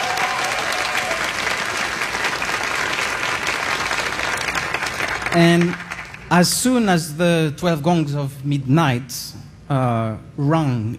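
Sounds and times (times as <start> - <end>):
audience applause: 0.0 - 6.3
speech: 5.3 - 10.9.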